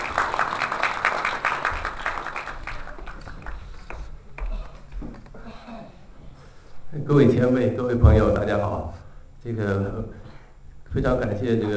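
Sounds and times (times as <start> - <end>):
audience applause: 0.0 - 4.1
speech: 7.1 - 10.2, 10.9 - 11.7.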